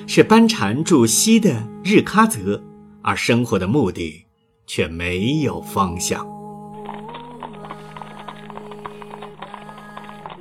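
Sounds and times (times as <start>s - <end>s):
sustained musical backdrop: 0.0s - 10.4s
speech: 0.1s - 7.0s
hooves of a large procession of horses carrying nobles toward Shigatse: 6.8s - 10.4s.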